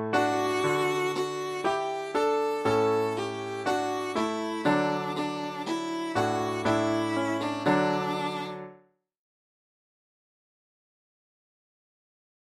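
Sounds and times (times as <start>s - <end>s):
viola playing a classical melody: 0.2s - 8.8s.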